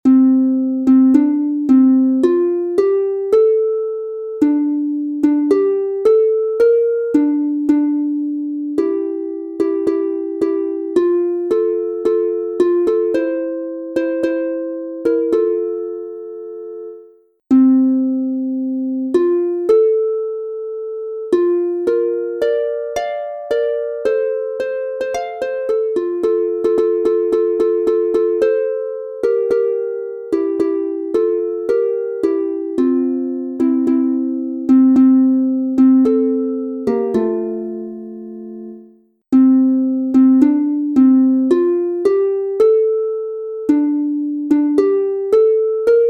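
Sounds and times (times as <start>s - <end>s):
instrumental harp piece in F major: 0.0s - 46.0s.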